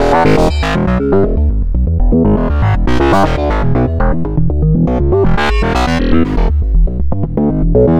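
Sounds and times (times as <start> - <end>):
synth bass: 0.0 - 7.9.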